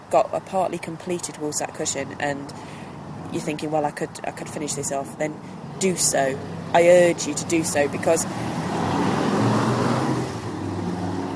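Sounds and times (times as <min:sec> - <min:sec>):
speech: 0:00.1 - 0:08.6
noisy motorbike passing: 0:05.3 - 0:11.3.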